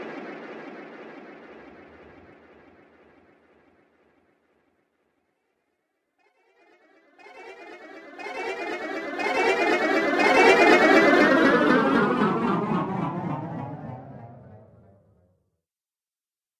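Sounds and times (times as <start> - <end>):
fantasy magic sound effects: 7.2 - 15.1.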